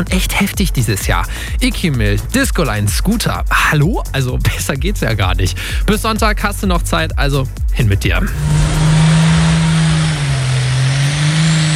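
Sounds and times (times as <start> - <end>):
speech: 0.0 - 8.8
tractor engine revving at tractor pulling in Edewecht: 8.2 - 11.7.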